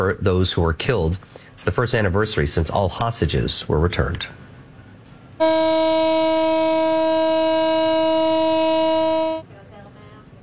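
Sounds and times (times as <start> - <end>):
speech: 0.0 - 4.4, 5.4 - 6.3
memorial siren in Tel Aviv: 5.4 - 9.4.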